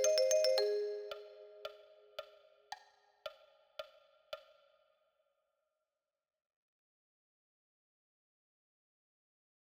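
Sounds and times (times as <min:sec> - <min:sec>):
marimba: 0:00.0 - 0:02.0.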